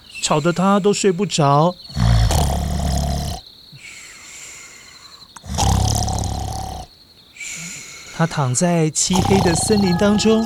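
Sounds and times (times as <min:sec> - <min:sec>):
speech: 0:00.2 - 0:02.0, 0:08.2 - 0:10.4
loud thunderous snoring: 0:01.9 - 0:03.4, 0:05.4 - 0:06.9, 0:09.1 - 0:10.0
breathing: 0:03.7 - 0:05.4, 0:07.4 - 0:08.4.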